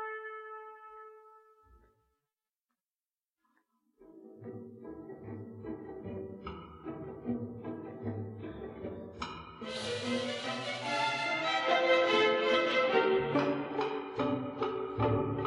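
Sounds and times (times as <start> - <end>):
cello: 4.0 - 15.4.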